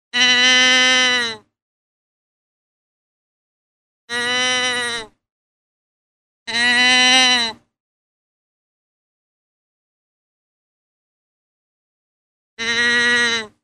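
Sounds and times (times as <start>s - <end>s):
deer bleating: 0.2s - 1.4s, 4.1s - 5.1s, 6.5s - 7.6s, 12.6s - 13.6s.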